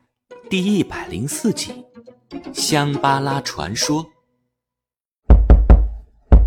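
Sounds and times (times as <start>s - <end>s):
speech: 0.4s - 4.1s
knocking on a door: 5.3s - 6.4s.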